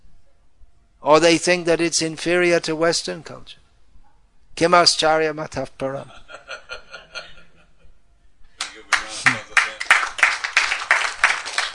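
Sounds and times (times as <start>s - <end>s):
speech: 1.0s - 3.6s, 4.6s - 6.6s
laughter: 6.0s - 8.0s, 8.8s - 10.2s
person clapping hands: 8.6s - 11.7s.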